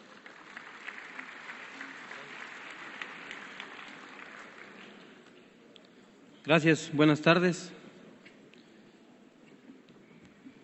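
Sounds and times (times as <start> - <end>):
audience applause: 0.0 - 5.3
speech: 6.4 - 7.8.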